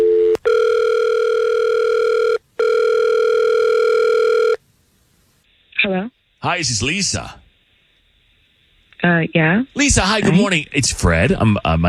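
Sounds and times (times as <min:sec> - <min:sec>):
outgoing telephone call ringback tones: 0:00.0 - 0:04.6
speech: 0:06.4 - 0:07.4, 0:09.0 - 0:11.8.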